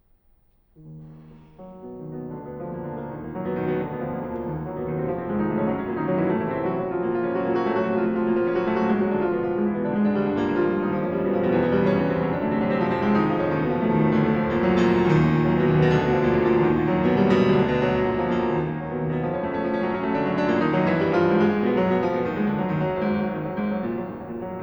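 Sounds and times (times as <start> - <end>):
piano prelude in E flat minor: 0.8 - 24.6.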